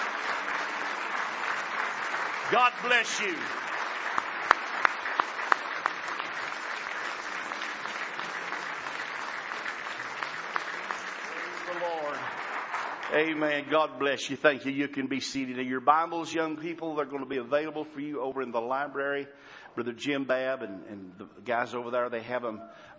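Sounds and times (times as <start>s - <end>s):
audience clapping in a standing ovation: 0.0s - 14.0s
speech: 2.5s - 3.7s, 13.1s - 22.9s.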